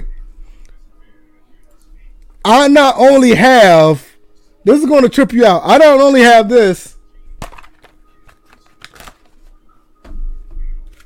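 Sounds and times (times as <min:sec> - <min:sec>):
speech: 0:02.6 - 0:07.0
football playbook and roster cards being shuffled and sorted: 0:07.4 - 0:09.6, 0:10.8 - 0:11.0.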